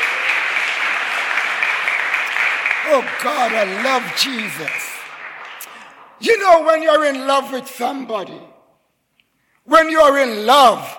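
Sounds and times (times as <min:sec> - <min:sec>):
audience clapping: 0:00.0 - 0:07.6
speech: 0:02.9 - 0:04.8, 0:06.2 - 0:08.5, 0:09.6 - 0:10.9.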